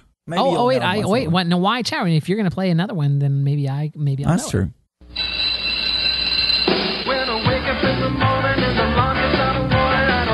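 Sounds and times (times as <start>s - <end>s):
speech: 0.3s - 4.8s
TV sitcom theme song: 6.6s - 10.3s.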